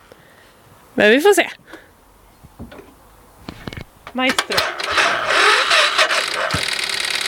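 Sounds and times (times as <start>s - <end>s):
speech: 1.0s - 1.8s, 4.2s - 5.1s
engine cranking but failing to start: 3.5s - 7.2s.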